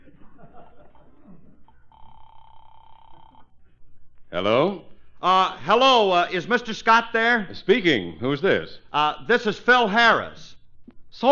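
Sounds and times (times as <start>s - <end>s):
laughter: 0.0s - 1.8s
electronic telephone ring tone: 1.8s - 3.5s
speech: 4.3s - 10.6s, 11.2s - 11.3s.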